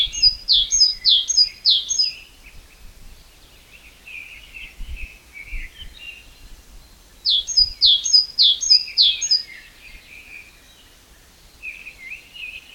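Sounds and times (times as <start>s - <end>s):
great tit song: 0.0s - 2.2s, 7.3s - 9.6s.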